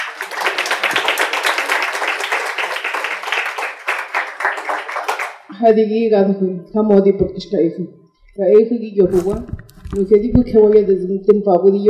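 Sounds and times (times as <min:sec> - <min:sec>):
audience applause: 0:00.0 - 0:05.5
speech: 0:05.6 - 0:11.8.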